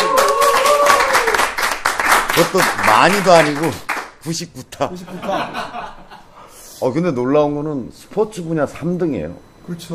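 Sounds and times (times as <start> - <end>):
hands clapping: 0.0 - 4.2
speech: 2.4 - 5.8, 6.8 - 9.9
laughter: 5.0 - 6.4.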